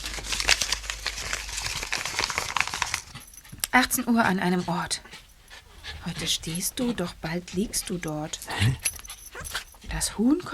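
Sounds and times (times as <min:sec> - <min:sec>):
torn paper page being handled: 0:00.0 - 0:03.4
speech: 0:03.8 - 0:05.1, 0:06.0 - 0:08.9, 0:09.9 - 0:10.5.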